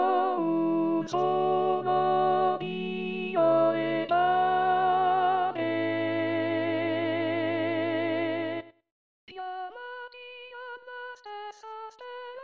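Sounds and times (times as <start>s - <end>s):
contraltos singing: 0.0s - 8.6s.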